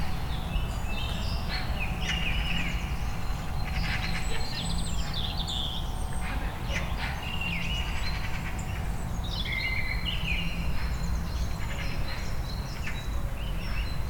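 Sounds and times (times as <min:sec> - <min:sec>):
bird calls with pulsed chattering, whistled phrases and trilled chatter: 0:00.0 - 0:14.0.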